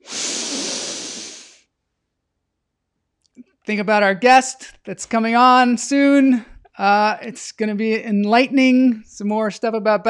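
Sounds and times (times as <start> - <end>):
long deep breath in and out: 0.0 - 1.7
speech: 3.7 - 10.0.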